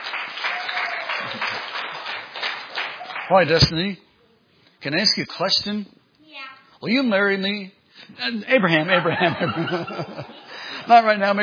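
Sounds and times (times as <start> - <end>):
crowd applauding: 0.0 - 3.7
speech: 3.3 - 4.1, 4.8 - 11.4
laughter: 8.7 - 11.0.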